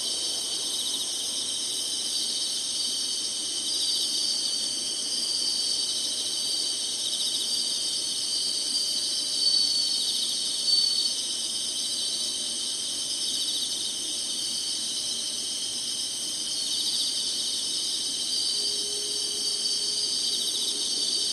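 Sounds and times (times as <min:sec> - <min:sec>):
insect chorus trilling: 0:00.0 - 0:21.3.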